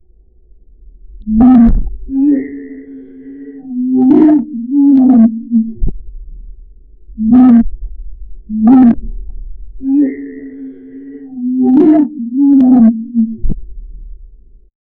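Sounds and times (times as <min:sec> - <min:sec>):
deep sea whale calls: 0:01.2 - 0:06.0, 0:07.1 - 0:07.8, 0:08.4 - 0:09.2, 0:09.8 - 0:13.7.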